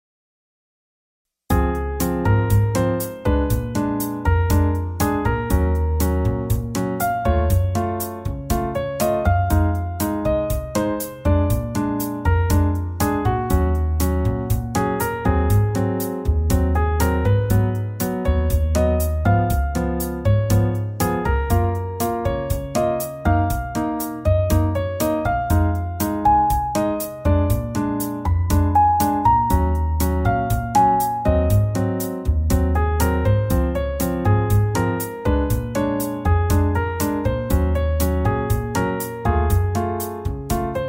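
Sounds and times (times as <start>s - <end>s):
bossa nova music: 1.5s - 40.8s.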